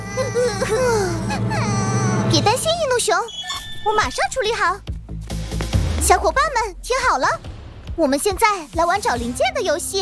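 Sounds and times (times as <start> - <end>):
person crying: 0.0 - 2.3
speech: 2.3 - 4.9, 6.0 - 9.9.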